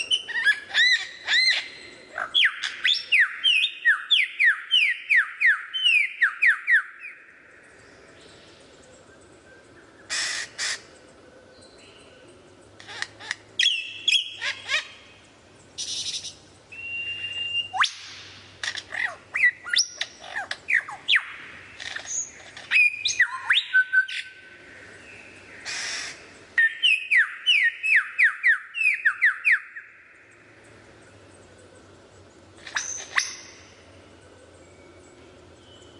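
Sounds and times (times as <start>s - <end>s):
lyrebird: 0.0s - 7.1s, 8.9s - 15.2s, 17.1s - 25.0s, 25.6s - 29.7s, 31.5s - 34.6s.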